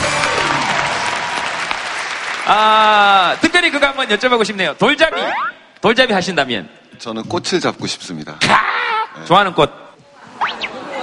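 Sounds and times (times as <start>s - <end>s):
audience applause: 0.0s - 5.1s
speech: 2.5s - 9.8s
laughter: 10.2s - 11.0s.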